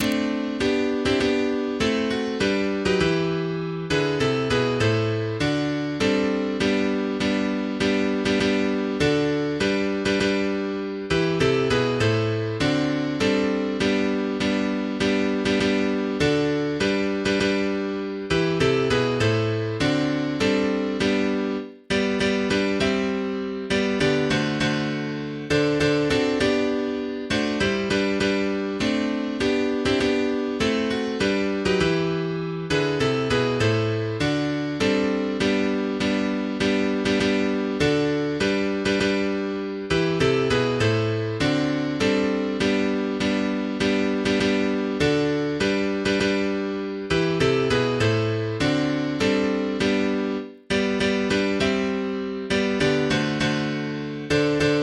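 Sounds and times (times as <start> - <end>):
fast MIDI Christmas song: 0.0 - 54.8.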